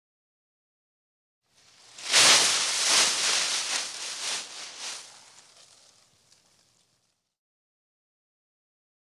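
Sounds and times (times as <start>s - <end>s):
body falling: 2.0s - 5.8s.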